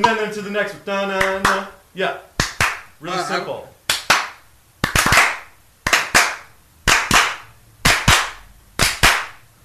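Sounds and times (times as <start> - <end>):
speech: 0.0 - 2.3, 3.0 - 3.7
hand claps for a music beat: 1.2 - 1.7, 2.4 - 3.0, 3.9 - 9.5.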